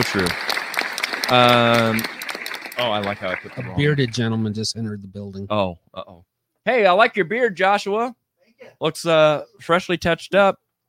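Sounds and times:
speech: 0.0 - 0.5, 1.3 - 2.2, 2.8 - 10.8
applause sound effect from clap button: 0.0 - 4.6.

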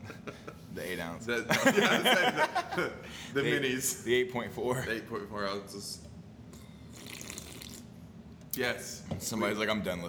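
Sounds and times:
laughter: 0.0 - 0.7, 1.5 - 3.8
speech: 1.0 - 6.1, 8.6 - 10.0
slurping a can of Red Bull: 6.6 - 7.9.

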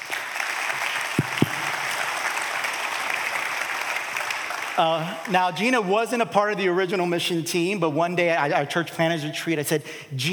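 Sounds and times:
audience hand clapping: 0.0 - 5.7
speech: 4.8 - 10.3.

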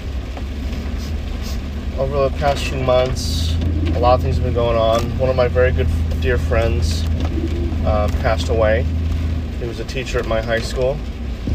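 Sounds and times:
car windshield wipers in heavy rain: 0.0 - 11.5
heavy rain: 0.0 - 11.5
speech: 2.0 - 9.0, 9.6 - 11.1.

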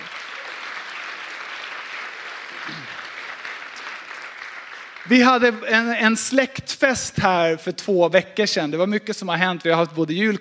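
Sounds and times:
audience applause: 0.0 - 6.1
speech: 2.7 - 3.0, 5.0 - 10.3.

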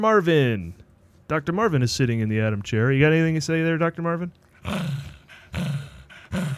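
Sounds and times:
speech: 0.0 - 5.8
dog growling: 4.5 - 6.5.

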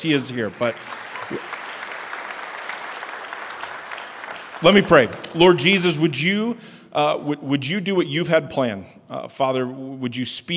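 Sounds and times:
speech: 0.0 - 1.6, 4.6 - 10.5
church congregation applause welcoming a speaker: 0.0 - 6.0.

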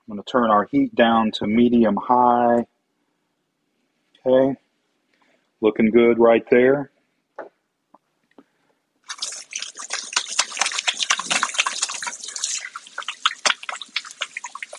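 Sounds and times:
speech: 0.1 - 2.7, 4.2 - 4.6, 5.6 - 6.9
faint drips and clicks: 7.9 - 14.7
running tap water splashing over hands washed of sausage grease: 9.1 - 14.7.

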